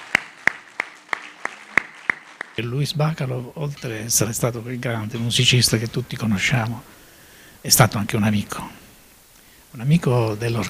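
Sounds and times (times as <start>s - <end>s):
orchestra members clapping for the audience: 0.0s - 2.7s
speech: 2.6s - 7.0s, 7.6s - 8.8s, 9.7s - 10.6s.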